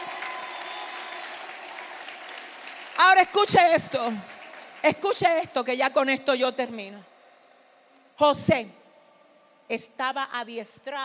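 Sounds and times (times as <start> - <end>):
audience applauding: 0.0 - 5.6
speech: 3.2 - 7.1, 8.2 - 8.8, 9.7 - 11.0.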